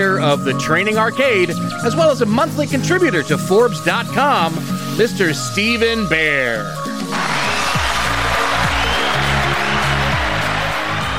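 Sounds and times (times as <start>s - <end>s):
speech: 0.0s - 6.8s
applause: 7.1s - 11.1s.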